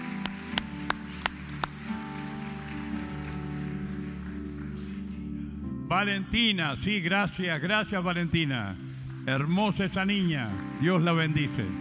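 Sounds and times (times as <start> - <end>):
audience applause: 0.0 - 5.2, 10.2 - 11.7
speech: 5.9 - 11.7.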